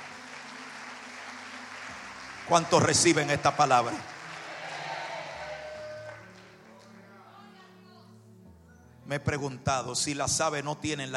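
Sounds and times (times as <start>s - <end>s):
audience applauding: 0.0s - 7.1s
speech: 2.5s - 4.1s, 9.1s - 11.1s.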